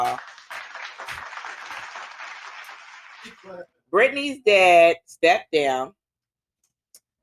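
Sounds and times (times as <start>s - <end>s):
round of applause: 0.0s - 3.5s
speech: 3.2s - 6.0s.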